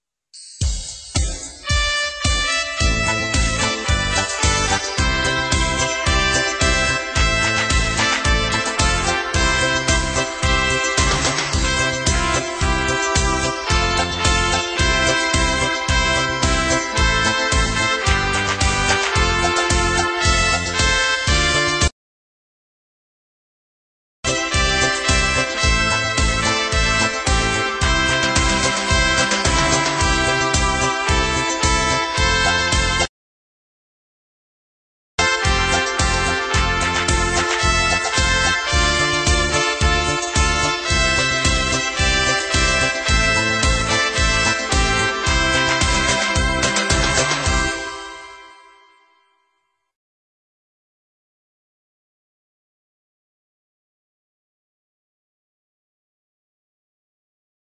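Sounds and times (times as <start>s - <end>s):
instrumental music beat: 0.4s - 21.9s, 24.3s - 33.1s, 35.2s - 48.7s.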